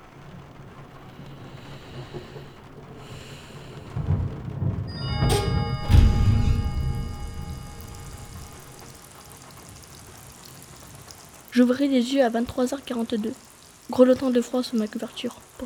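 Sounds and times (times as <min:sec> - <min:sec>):
raindrops on a window: 0:00.0 - 0:15.6
speech: 0:11.6 - 0:15.4.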